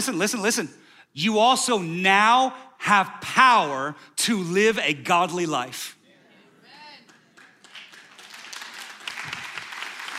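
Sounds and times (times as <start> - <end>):
speech: 0.0 - 6.0
audience applause: 7.1 - 10.1.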